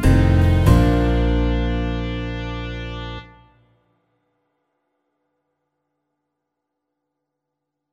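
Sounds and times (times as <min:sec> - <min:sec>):
slow music at 95 bpm: 0:00.0 - 0:03.7.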